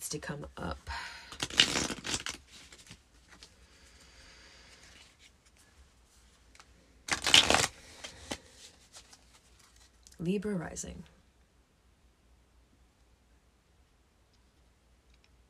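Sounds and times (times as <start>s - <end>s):
speech: 0.1s - 1.0s, 10.2s - 11.2s
tarot cards being shuffled: 1.3s - 3.6s, 6.5s - 10.0s.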